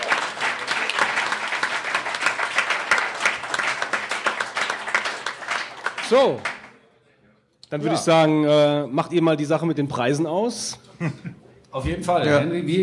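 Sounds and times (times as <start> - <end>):
group applause: 0.0 - 6.8
speech: 6.1 - 6.5, 7.7 - 12.8
laughter: 10.9 - 11.6.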